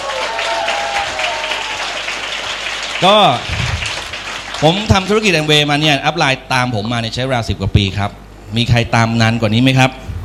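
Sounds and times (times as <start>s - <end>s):
audience applause: 0.0s - 5.6s
speech: 3.0s - 3.6s, 4.6s - 10.0s.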